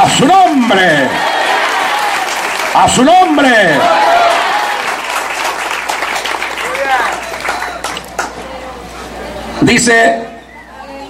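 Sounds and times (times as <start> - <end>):
audience applause: 0.0 - 8.4
speech: 0.2 - 1.2, 2.8 - 4.1, 9.6 - 10.3.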